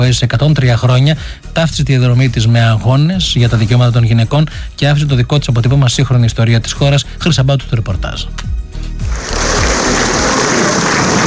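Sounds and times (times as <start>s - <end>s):
speech: 0.0s - 8.6s
prolonged applause at a funeral: 9.2s - 11.2s.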